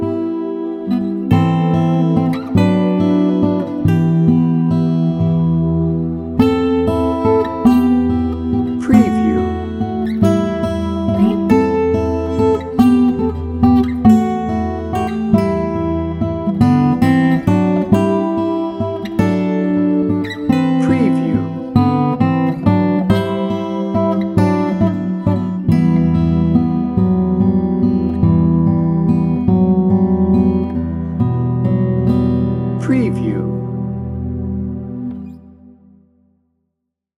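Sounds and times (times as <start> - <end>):
warm dramatic music: 0.0 - 36.2.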